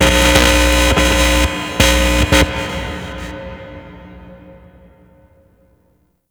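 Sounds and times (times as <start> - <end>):
stage amplifier: 0.0 - 4.4.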